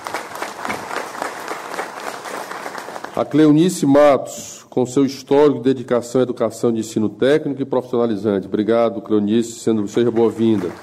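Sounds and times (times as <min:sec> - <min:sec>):
round of applause: 0:00.0 - 0:03.6, 0:09.8 - 0:10.8
speech: 0:03.2 - 0:10.8.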